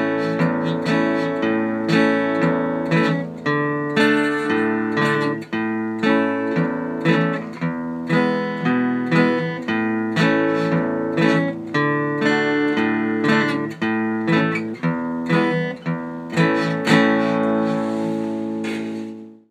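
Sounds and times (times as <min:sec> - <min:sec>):
guitar playing alternating basses in the key of A: 0:00.0 - 0:19.4.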